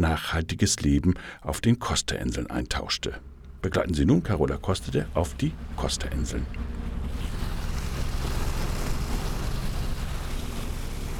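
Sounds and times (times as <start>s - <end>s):
speech: 0.0s - 6.8s
motor boat chugging through the water: 1.9s - 11.1s
water splashing: 2.8s - 11.1s.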